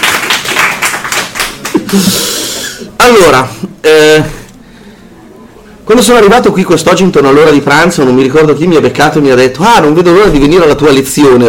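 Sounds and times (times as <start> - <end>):
audience applause at the start of a lecture: 0.0 - 2.4
speech: 1.9 - 2.3, 3.0 - 4.4, 5.9 - 11.4.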